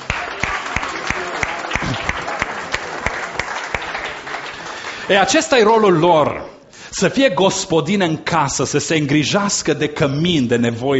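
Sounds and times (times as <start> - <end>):
audience applause: 0.0 - 6.1
speech: 5.1 - 10.9.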